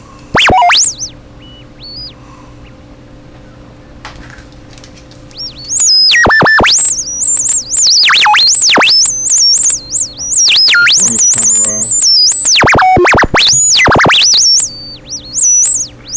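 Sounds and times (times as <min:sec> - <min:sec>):
robot scanning beeps: 0:00.3 - 0:01.2, 0:05.4 - 0:16.1.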